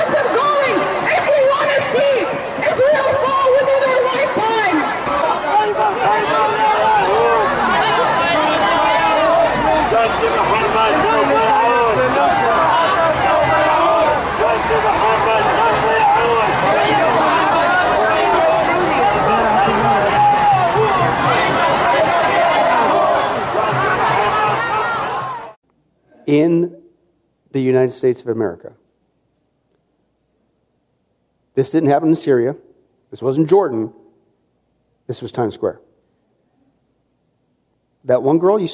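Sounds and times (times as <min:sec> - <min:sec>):
crowd chatter at rally: 0:00.0 - 0:25.6
speech: 0:26.3 - 0:26.7, 0:27.6 - 0:28.8, 0:31.6 - 0:34.0, 0:35.1 - 0:35.8, 0:38.0 - 0:38.7.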